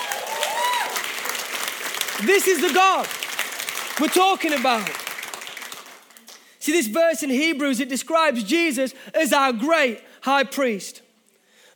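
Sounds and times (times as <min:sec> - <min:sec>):
audience clapping: 0:00.0 - 0:06.6
speech: 0:02.2 - 0:03.2, 0:04.0 - 0:05.0, 0:06.6 - 0:11.0.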